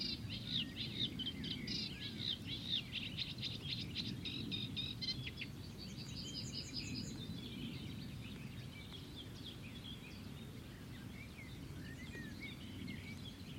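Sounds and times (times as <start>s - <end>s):
birds chirping and calling: 0.0s - 13.5s.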